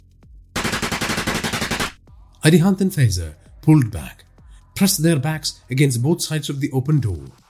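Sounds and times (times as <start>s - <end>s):
automatic gunfire sound effect in an action-thriller audio drama: 0.6s - 2.0s
speech: 2.4s - 7.4s.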